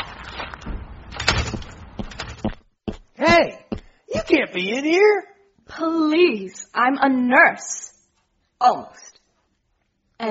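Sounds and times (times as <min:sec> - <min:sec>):
door rattling and scraping open: 0:00.0 - 0:02.5
speech: 0:03.2 - 0:03.6, 0:04.6 - 0:07.9, 0:08.6 - 0:09.1.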